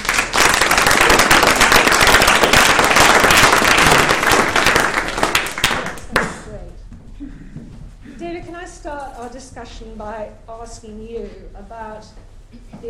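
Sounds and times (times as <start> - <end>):
audience applause welcoming a panel at a discussion event: 0.0 - 6.4
speech: 9.2 - 12.8.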